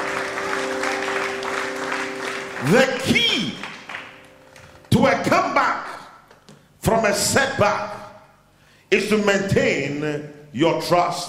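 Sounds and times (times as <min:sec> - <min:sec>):
audience clapping: 0:00.0 - 0:04.9
speech: 0:02.6 - 0:03.7, 0:04.9 - 0:05.8, 0:06.8 - 0:08.0, 0:08.9 - 0:11.2.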